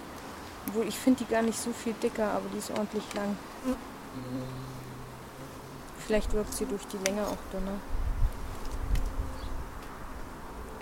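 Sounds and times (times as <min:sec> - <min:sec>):
speech: 0:00.7 - 0:04.8, 0:06.1 - 0:08.0
bee buzzing past the recording device: 0:01.8 - 0:09.6.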